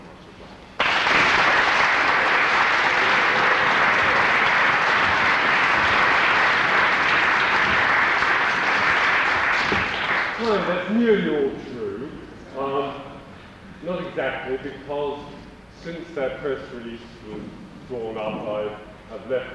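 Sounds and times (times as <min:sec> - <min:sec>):
audience applause welcoming a speaker: 0:00.8 - 0:10.9
speech: 0:10.6 - 0:11.4, 0:14.5 - 0:19.5.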